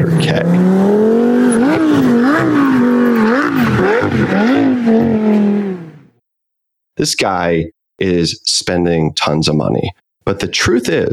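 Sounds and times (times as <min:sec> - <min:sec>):
Audi A8 engine revving doing donuts: 0:00.0 - 0:06.2
speech: 0:00.3 - 0:00.9, 0:07.0 - 0:11.1.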